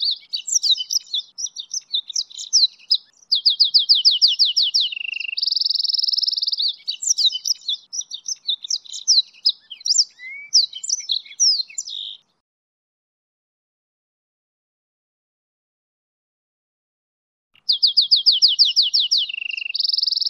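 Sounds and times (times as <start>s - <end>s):
hybrid of goldfinch and canary: 0.0s - 12.3s, 17.6s - 20.2s.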